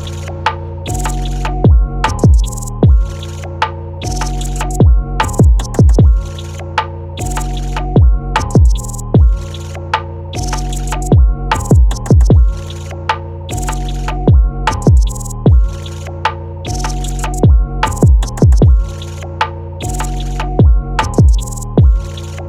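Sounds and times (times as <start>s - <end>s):
tropical drum kit: 0.0s - 3.2s, 4.1s - 6.6s, 7.2s - 9.6s, 10.4s - 12.7s, 13.6s - 15.9s, 16.8s - 19.1s, 19.9s - 22.3s.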